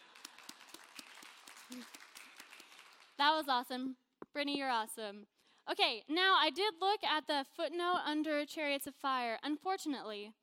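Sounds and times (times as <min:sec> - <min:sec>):
audience applause: 0:00.0 - 0:03.2
speech: 0:01.7 - 0:02.0, 0:03.2 - 0:10.4.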